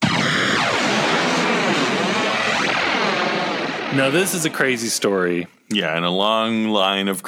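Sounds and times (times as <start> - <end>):
Emperor's lightning bolt electric crackle: 0.0 - 5.2
whining tones sweeping up and down: 0.0 - 5.5
speech: 3.9 - 7.2.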